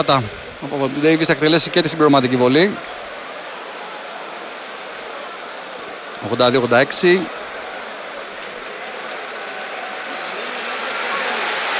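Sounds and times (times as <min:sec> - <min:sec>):
speech: 0:00.0 - 0:02.9, 0:06.2 - 0:07.4
Panathinaikos basketball crowd applauding: 0:00.0 - 0:11.7.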